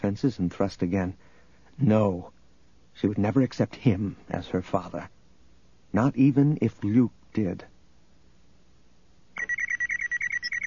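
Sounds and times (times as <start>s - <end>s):
speech: 0.0s - 2.4s, 3.0s - 5.2s, 5.9s - 7.7s
comlink beeping from shirt pocket: 9.4s - 10.6s.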